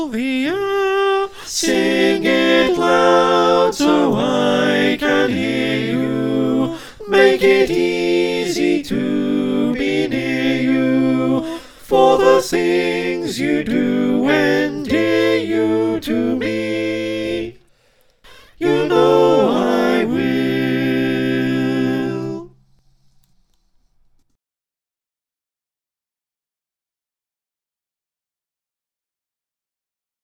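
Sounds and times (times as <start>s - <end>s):
soprano alto tenor bass choir singing: 0.1s - 22.6s.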